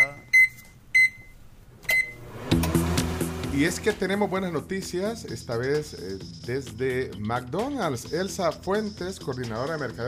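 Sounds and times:
microwave oven beeping: 0.0s - 3.4s
music: 2.5s - 10.0s
speech: 3.6s - 10.0s.

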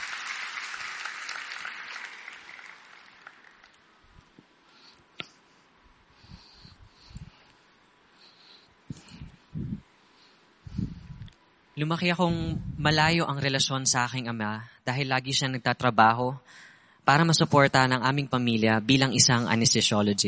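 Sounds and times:
congregation applause during a church service: 0.0s - 4.0s
speech: 11.8s - 20.2s.

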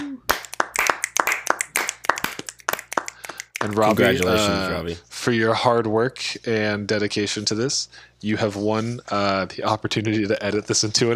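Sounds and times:
group applause: 0.2s - 4.7s
speech: 3.6s - 11.1s.

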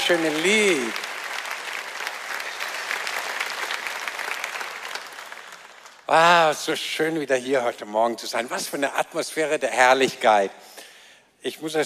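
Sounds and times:
sustained applause from a large audience: 0.0s - 6.3s
speech: 0.1s - 1.1s, 6.1s - 10.8s, 11.4s - 11.8s.

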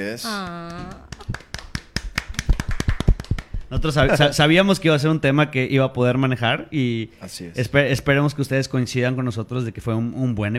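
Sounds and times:
speech: 0.0s - 1.4s, 3.7s - 10.5s
brief applause from a small group: 0.3s - 4.1s.

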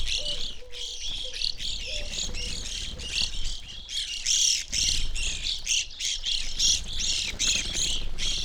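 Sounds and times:
Evening grosbeak flock chirping: 0.0s - 8.4s.

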